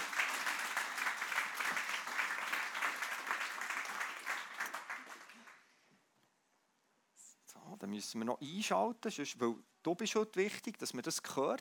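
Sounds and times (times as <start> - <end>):
audience applause: 0.0 - 5.7
speech: 7.8 - 11.5.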